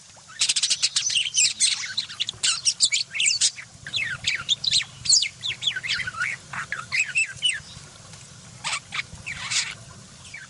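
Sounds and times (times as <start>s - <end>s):
budgerigar chattering: 0.4s - 7.6s, 8.6s - 9.8s.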